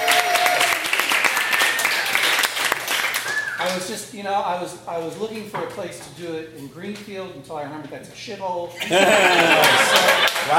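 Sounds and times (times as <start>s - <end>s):
round of applause: 0.0s - 3.8s, 9.6s - 10.5s
speech: 3.6s - 10.5s
laughter: 8.8s - 10.5s.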